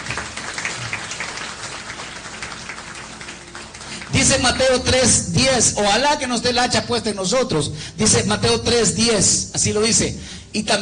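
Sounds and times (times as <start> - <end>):
audience applause: 0.0 - 4.7
speech: 4.2 - 10.8.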